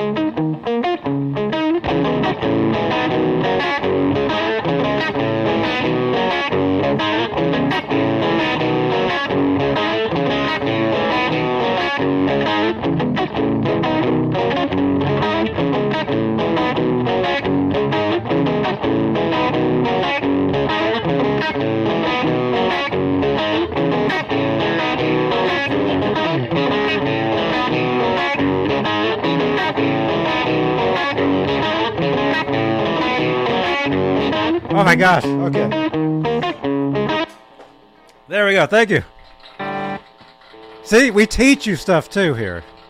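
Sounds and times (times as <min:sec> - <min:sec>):
heavy distorted electric guitar riffs with palm-muted chugging: 0:00.0 - 0:42.8
speech: 0:35.0 - 0:35.4, 0:38.6 - 0:39.2, 0:40.9 - 0:42.7.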